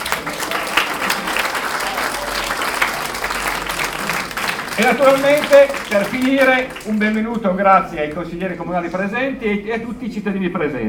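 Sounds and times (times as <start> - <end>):
audience applause: 0.0 - 7.6
speech: 4.8 - 10.8.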